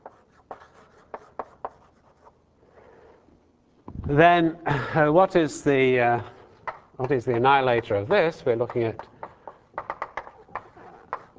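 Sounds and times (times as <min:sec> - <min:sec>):
writing on a board during a lecture on differential forms: 0:00.0 - 0:02.4, 0:06.3 - 0:11.3
speech: 0:04.1 - 0:06.4, 0:07.0 - 0:09.1.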